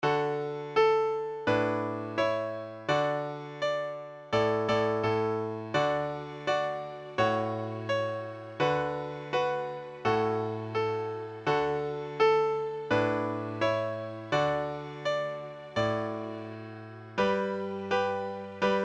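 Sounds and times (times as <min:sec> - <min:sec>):
84 BPM Christmas song: 0:00.0 - 0:18.8.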